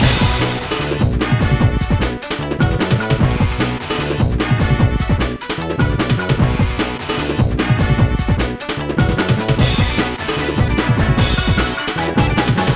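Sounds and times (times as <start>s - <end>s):
opening music loop: 0.0s - 12.7s.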